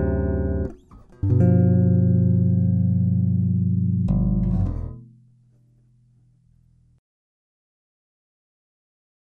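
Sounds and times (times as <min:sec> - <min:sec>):
bass played with two fingers: 0:00.0 - 0:06.9.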